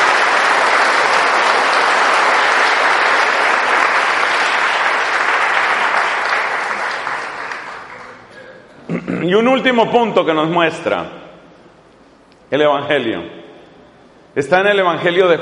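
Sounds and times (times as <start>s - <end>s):
audience applause: 0.0s - 8.3s
speech: 9.3s - 11.2s, 12.5s - 13.4s, 14.4s - 15.3s.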